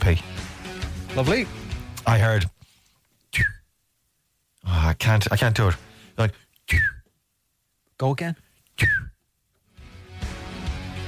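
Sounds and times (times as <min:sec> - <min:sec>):
speech: 0:00.0 - 0:00.4, 0:01.2 - 0:02.6, 0:03.3 - 0:03.6, 0:04.6 - 0:07.0, 0:08.0 - 0:09.1
person whistling imitating smoke alarm low-battery chirp: 0:03.4 - 0:03.6, 0:06.7 - 0:07.1, 0:08.8 - 0:09.2.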